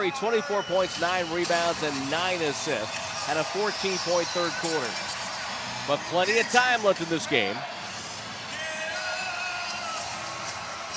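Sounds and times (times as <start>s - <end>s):
speech: 0.0s - 5.1s, 5.8s - 7.7s
large arena crowd roaring and cheering: 0.0s - 10.9s
yells and whoops: 8.5s - 10.9s.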